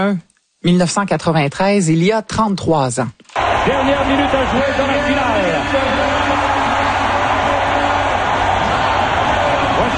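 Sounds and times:
speech: 0:00.0 - 0:06.1
hockey arena crowd cheering: 0:03.4 - 0:09.9.

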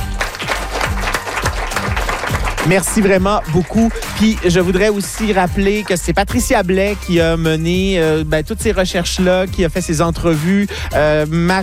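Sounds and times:
audience with seventh-grade students applauding: 0:00.0 - 0:05.3
speech: 0:02.6 - 0:11.6.

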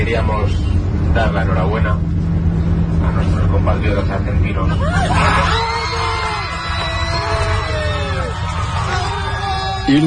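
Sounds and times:
speech: 0:00.1 - 0:02.3, 0:03.1 - 0:05.7, 0:09.9 - 0:10.0
Argentine airline passengers on a flight screaming and cheering with joy: 0:04.5 - 0:10.0.

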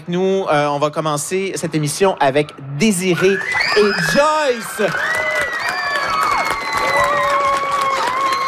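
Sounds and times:
speech: 0:00.0 - 0:05.2
audience of children clapping for three students: 0:04.8 - 0:08.4.

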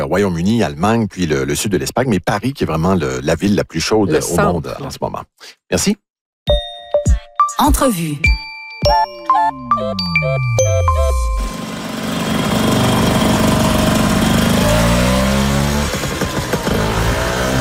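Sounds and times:
speech: 0:00.0 - 0:06.6, 0:07.6 - 0:11.0
Vespa scooter engine running: 0:11.4 - 0:17.5.

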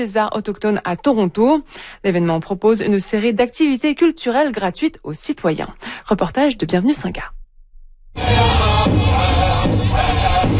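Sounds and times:
speech: 0:00.0 - 0:07.4, 0:08.2 - 0:09.3
Indigenous singing: 0:08.2 - 0:10.5
powwow drumming at Toronto's annual Indigenous arts festival: 0:08.3 - 0:10.5.

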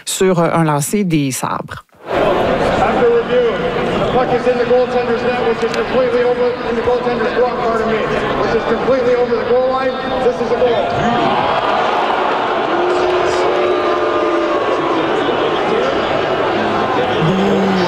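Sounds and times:
speech: 0:00.2 - 0:11.7
hockey crowd waiting outside arena: 0:02.0 - 0:07.1, 0:10.1 - 0:17.8.

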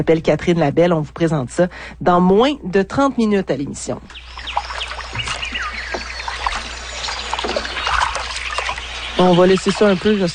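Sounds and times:
speech: 0:00.0 - 0:05.3, 0:09.2 - 0:10.3
canoe paddle strokes splashing on calm water: 0:04.1 - 0:10.3.

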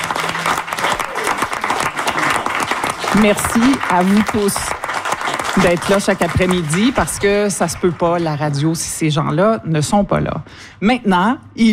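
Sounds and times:
studio audience applause: 0:00.0 - 0:08.6
speech: 0:03.2 - 0:04.8, 0:05.6 - 0:11.7.

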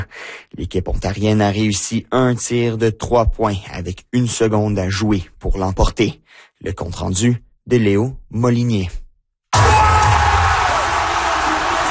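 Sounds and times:
speech: 0:00.5 - 0:09.0
arena crowd cheering after winning shot: 0:09.6 - 0:11.8.

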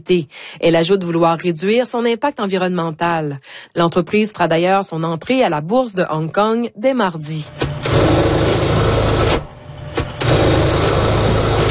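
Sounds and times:
speech: 0:00.0 - 0:08.7
sewing machine humming: 0:07.5 - 0:11.6.

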